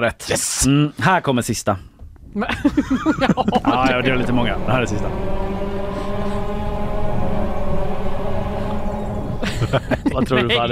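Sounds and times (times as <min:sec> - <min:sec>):
speech: 0:00.0 - 0:05.8, 0:09.6 - 0:10.7
laughter: 0:02.4 - 0:04.7, 0:09.4 - 0:10.7
distant chainsaw: 0:03.5 - 0:10.4.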